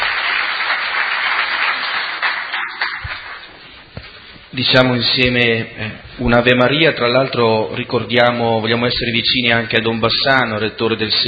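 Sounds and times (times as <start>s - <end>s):
audience applause: 0.0s - 3.6s
speech: 4.6s - 11.2s.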